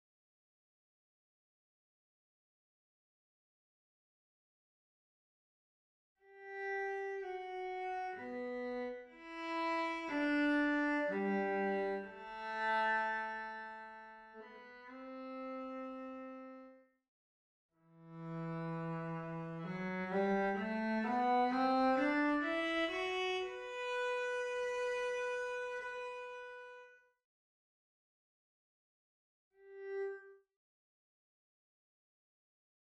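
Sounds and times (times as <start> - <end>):
cello: 6.3 - 16.8, 17.9 - 27.0, 29.6 - 30.4.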